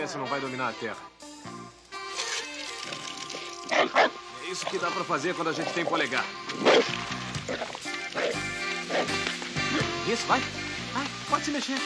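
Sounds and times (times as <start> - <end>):
speech: 0.0 - 1.2, 4.5 - 7.8, 10.1 - 11.8
small dog barking angrily: 3.7 - 4.2, 6.5 - 9.4.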